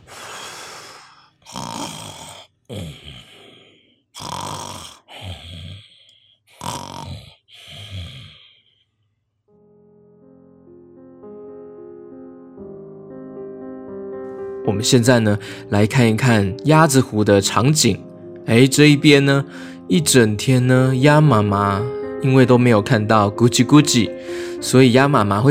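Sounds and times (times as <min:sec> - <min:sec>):
drunk men snoring loudly: 0:00.1 - 0:08.7
speech: 0:02.7 - 0:03.2, 0:14.7 - 0:25.4.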